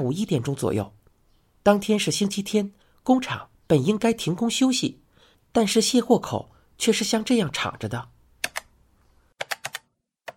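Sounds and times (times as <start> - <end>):
speech: 0.0 - 1.0, 1.6 - 8.2
computer keyboard keystrokes: 8.4 - 8.7, 9.4 - 10.3.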